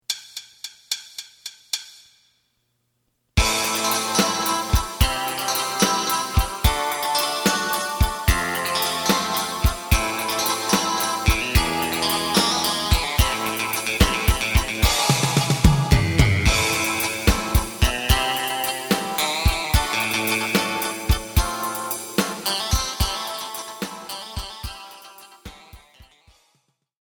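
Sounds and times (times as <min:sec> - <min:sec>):
bass: 0:03.4 - 0:24.1.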